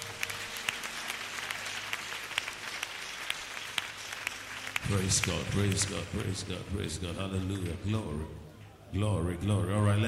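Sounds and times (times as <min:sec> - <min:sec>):
audience clapping: 0:00.0 - 0:07.8
speech: 0:04.9 - 0:10.0.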